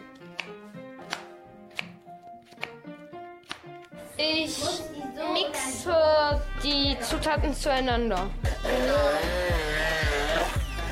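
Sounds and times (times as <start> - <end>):
knife chopping fruit for alcohol-free cocktails: 0.0 - 2.8, 3.4 - 3.9
music: 0.0 - 10.9
speech: 4.2 - 9.6.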